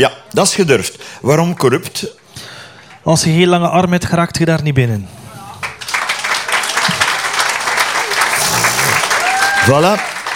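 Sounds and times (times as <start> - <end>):
speech: 0.0 - 5.2, 9.6 - 10.1
crowd applause: 5.4 - 10.3.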